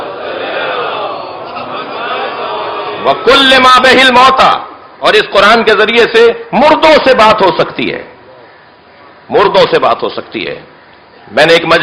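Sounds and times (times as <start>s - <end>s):
crowd at a religious gathering loudly chanting a salutation to Muhammad: 0.0s - 3.6s
speech: 3.0s - 8.1s, 9.3s - 10.7s, 11.3s - 11.8s.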